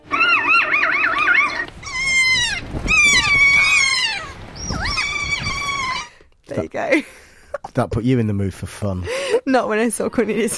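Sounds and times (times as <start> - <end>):
New Zealand Kea parrot play call: 0.0 - 6.2
speech: 6.8 - 7.2, 7.8 - 10.5.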